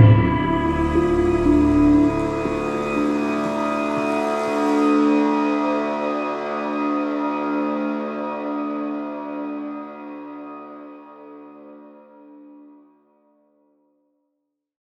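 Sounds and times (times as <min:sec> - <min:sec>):
autoharp: 0:00.0 - 0:11.3.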